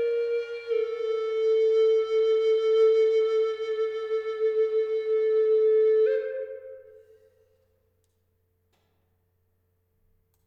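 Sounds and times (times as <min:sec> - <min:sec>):
maple flute model playing low F sharp at 432 Hz: 0:00.0 - 0:07.1.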